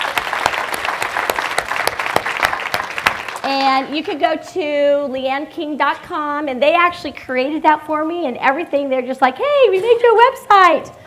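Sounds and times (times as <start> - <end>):
audience applause: 0.0 - 3.9
speech: 3.6 - 11.0.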